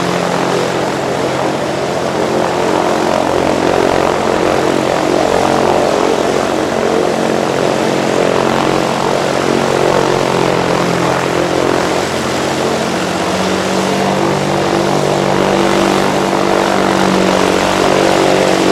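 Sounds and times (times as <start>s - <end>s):
WW2 fighter plane engine idling while taxiing: 0.0s - 18.6s.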